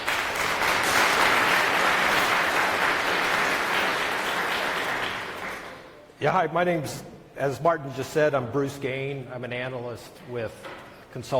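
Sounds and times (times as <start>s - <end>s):
audience applause: 0.0s - 6.0s
speech: 6.2s - 11.3s.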